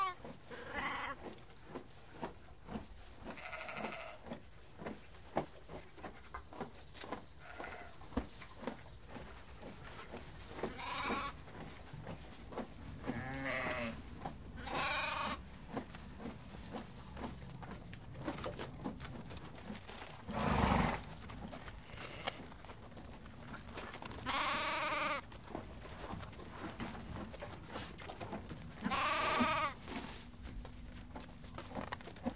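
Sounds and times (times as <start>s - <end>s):
sheep bleating: 0.0s - 1.2s, 3.3s - 4.2s, 10.7s - 11.4s, 13.1s - 14.0s, 14.6s - 15.4s, 21.8s - 22.5s, 24.2s - 25.2s, 28.8s - 29.8s
chewing and crunching: 0.0s - 32.3s.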